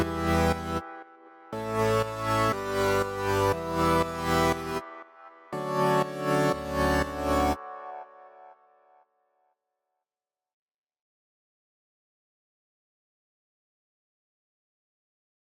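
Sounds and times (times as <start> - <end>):
mellow mix stem music loop: 0.0 - 8.8.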